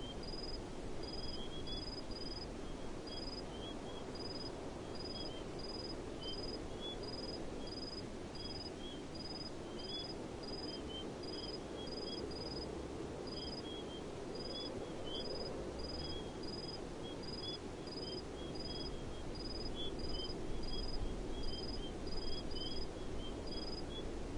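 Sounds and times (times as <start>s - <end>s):
crickets chirping in a desert: 0.2s - 2.5s, 3.1s - 12.7s, 13.3s - 24.0s.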